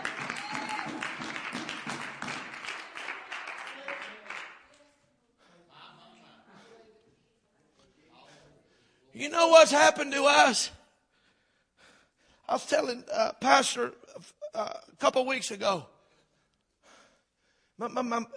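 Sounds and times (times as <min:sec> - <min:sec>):
audience clapping: 0:00.0 - 0:04.8
speech: 0:09.2 - 0:10.8, 0:12.5 - 0:15.9, 0:17.8 - 0:18.3.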